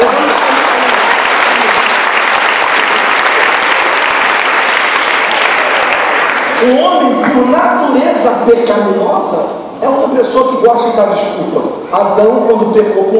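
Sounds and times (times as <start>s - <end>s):
audience applause: 0.0s - 6.9s
speech: 8.2s - 13.1s.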